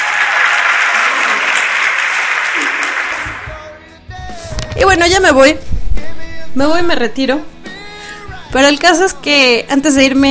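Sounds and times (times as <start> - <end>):
applause: 0.0 - 3.6
speech: 4.8 - 5.7, 6.6 - 7.5, 8.5 - 10.2.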